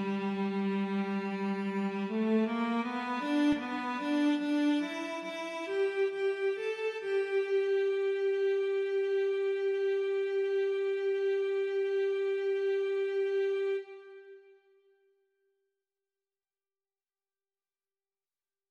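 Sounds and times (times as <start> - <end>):
intermezzo larghetto: 0.0 - 14.7.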